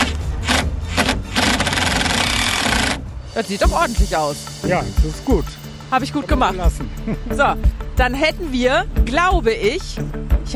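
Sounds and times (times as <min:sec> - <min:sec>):
cordless screwdriver driving in screws: 0:00.0 - 0:03.0
speech: 0:03.4 - 0:10.5.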